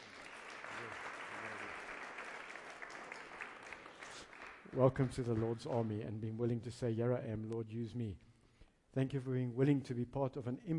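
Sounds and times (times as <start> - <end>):
church congregation applauding a new member: 0.0 - 6.0
speech: 0.8 - 1.0, 4.7 - 8.3, 9.0 - 10.7.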